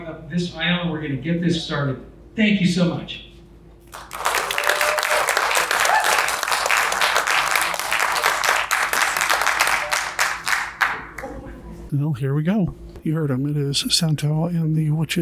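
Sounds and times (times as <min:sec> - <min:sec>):
speech: 0:00.1 - 0:03.3, 0:11.9 - 0:15.2
crowd applause: 0:03.9 - 0:11.4.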